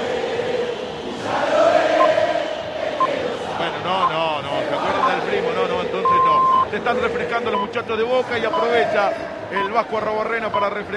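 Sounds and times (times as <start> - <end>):
football stadium crowd shouting: 0.0 - 10.1
speech: 6.8 - 10.9.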